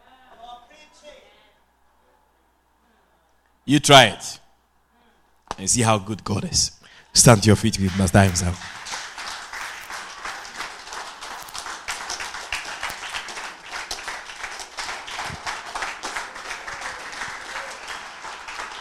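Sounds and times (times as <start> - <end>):
speech: 3.7 - 4.4, 5.6 - 8.8
audience clapping: 7.2 - 18.8.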